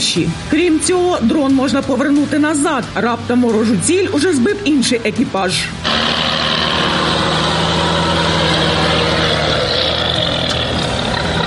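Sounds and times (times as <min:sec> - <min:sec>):
speech: 0:00.1 - 0:06.1
armoured air-defence vehicle heavy engine idling: 0:05.8 - 0:11.4.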